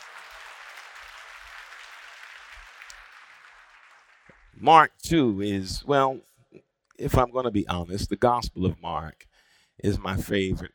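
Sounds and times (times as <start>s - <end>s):
audience clapping: 0.0s - 4.6s
speech: 4.6s - 6.3s, 7.0s - 10.7s.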